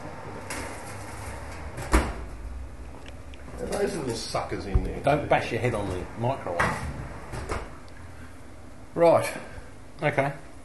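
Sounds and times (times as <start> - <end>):
speech: 3.8 - 6.9, 9.0 - 10.4
oven door thudding shut: 4.7 - 5.4.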